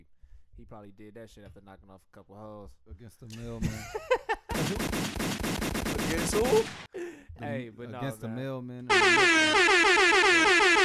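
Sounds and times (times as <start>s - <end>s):
speech: 0.6s - 10.8s
air horn sound effect: 8.9s - 10.8s.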